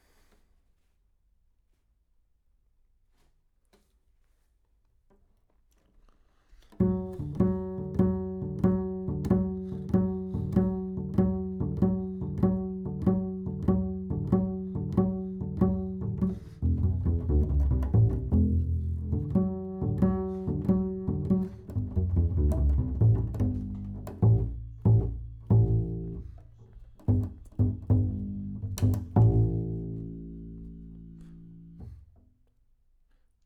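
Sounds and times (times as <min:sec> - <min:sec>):
bass: 0:06.7 - 0:32.2.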